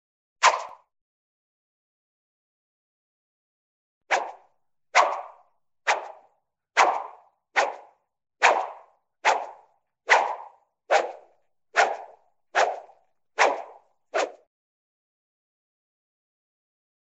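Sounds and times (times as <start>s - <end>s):
fast cartoon swishes: 0.4s - 0.8s, 4.1s - 4.4s, 5.0s - 14.4s.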